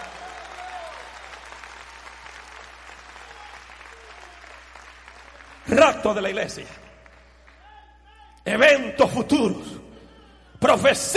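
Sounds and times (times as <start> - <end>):
applause: 0.0 - 8.1
speech: 5.7 - 6.8, 8.5 - 9.7, 10.6 - 11.1.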